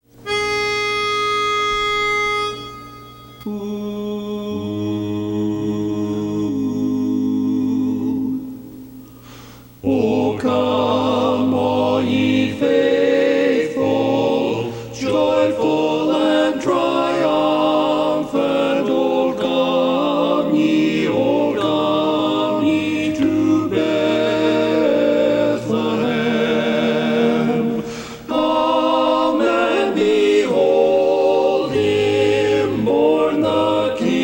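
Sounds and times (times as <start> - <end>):
tenor singing a carol in barbershop style: 0.3 - 8.8, 9.8 - 34.2.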